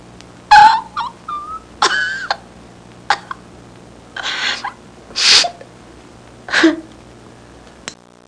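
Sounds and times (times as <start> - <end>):
woman crying: 0.5 - 2.4, 4.2 - 5.7, 6.5 - 6.9.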